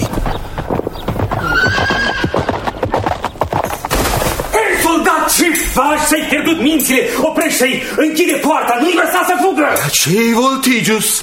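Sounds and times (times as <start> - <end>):
hooves clip-clopping: 0.0 - 9.4
horse neighing: 1.4 - 2.6
speech: 5.8 - 11.2.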